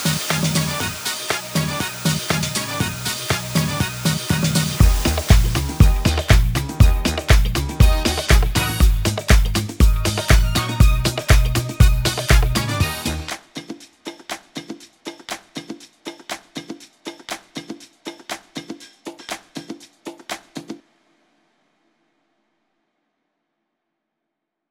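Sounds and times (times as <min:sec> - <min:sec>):
disco music: 0:00.0 - 0:13.4.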